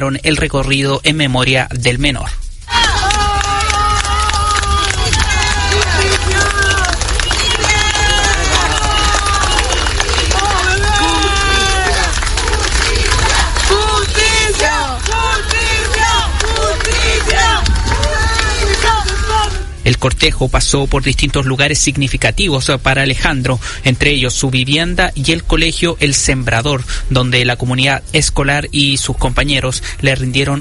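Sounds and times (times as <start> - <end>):
speech: 0.0 - 2.4, 19.9 - 30.6
crowd shouting demands for justice: 2.7 - 19.9.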